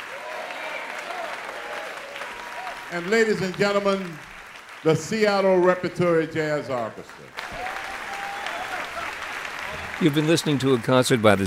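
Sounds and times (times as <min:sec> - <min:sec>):
audience applause: 0:00.0 - 0:11.4
speech: 0:02.9 - 0:07.4, 0:10.0 - 0:11.4.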